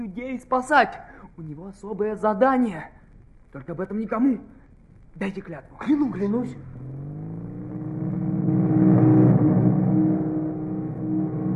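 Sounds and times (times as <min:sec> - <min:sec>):
speech: 0:00.1 - 0:04.6, 0:05.2 - 0:07.0
group of motorcycles rumbling past: 0:06.5 - 0:11.5.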